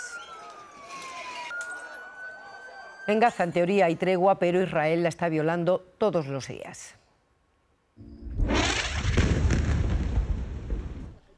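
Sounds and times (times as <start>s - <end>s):
speech: 3.1s - 7.0s
Israeli airstrike explosions on Jan Yunis: 8.0s - 11.2s.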